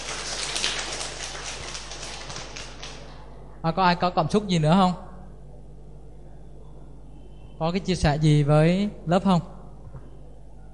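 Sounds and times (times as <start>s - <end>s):
round of applause from a group: 0.0s - 3.1s
speech: 3.6s - 5.1s, 7.6s - 9.6s.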